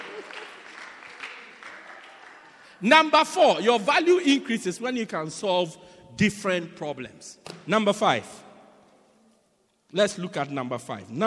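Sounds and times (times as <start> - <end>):
audience clapping: 0.0 - 2.8
speech: 2.8 - 8.4, 9.9 - 11.2.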